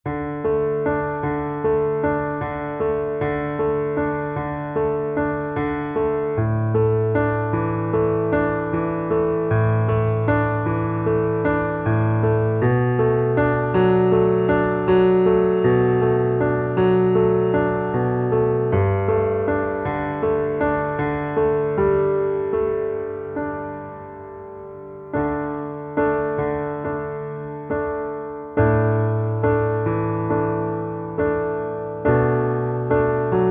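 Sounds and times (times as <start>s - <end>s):
piano underscore: 0.0s - 33.4s.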